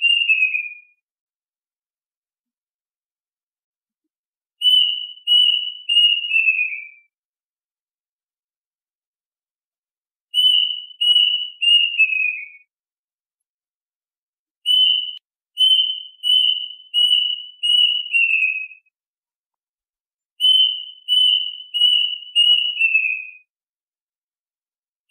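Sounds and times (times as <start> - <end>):
duck whistled calls: 4.6 - 6.9, 10.4 - 12.5, 14.7 - 18.8, 20.4 - 23.3.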